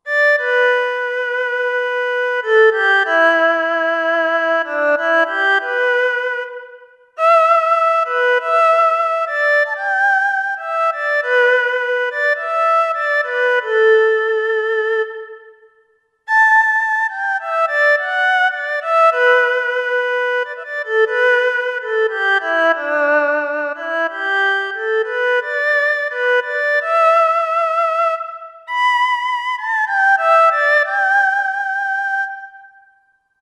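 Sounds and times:
erhu solo: 0.0 - 33.0.

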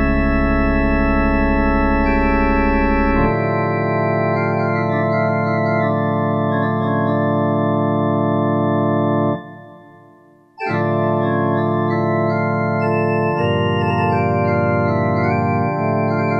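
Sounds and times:
synthesized pipes from a Kurzweil K2000 Orchestral ROM: 0.0 - 16.3.

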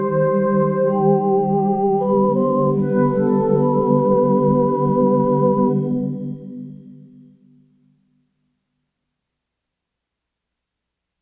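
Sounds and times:
light choir whisper on a synthesizer: 0.0 - 6.8.

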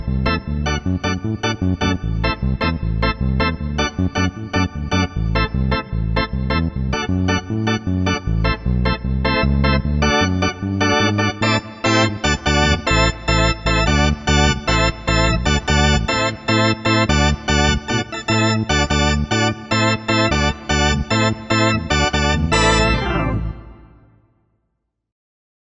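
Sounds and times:
Korg MSC-9S organ with bass and full registration: 0.0 - 24.2.

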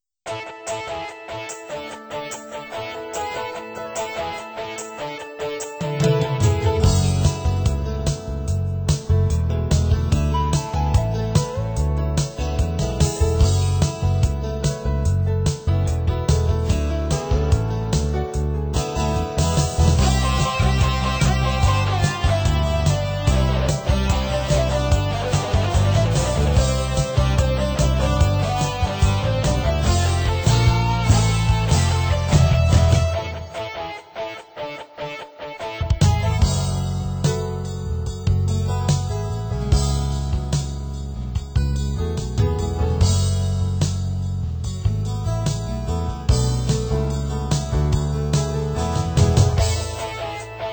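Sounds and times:
Yamaha PSR-530 keyboard: 0.3 - 50.7.

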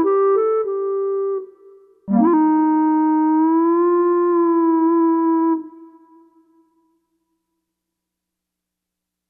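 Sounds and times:
clarinet on Korg MSC-4S Orchestra: 0.0 - 6.8.

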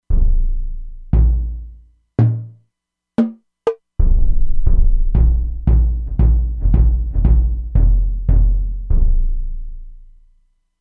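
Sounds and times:
bass drum: 0.1 - 2.6, 3.2 - 3.4, 4.0 - 9.6.

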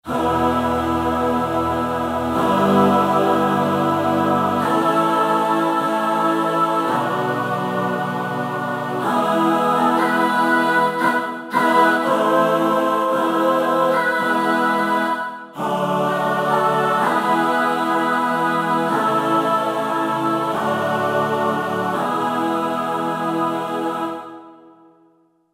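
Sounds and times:
choir singing: 0.0 - 25.1.

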